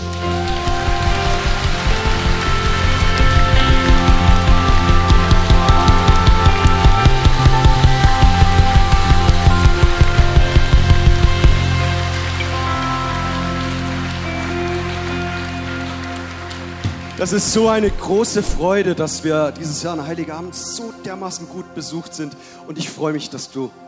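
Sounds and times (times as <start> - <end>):
audience applause: 0.0 - 19.0
speech: 17.2 - 23.8.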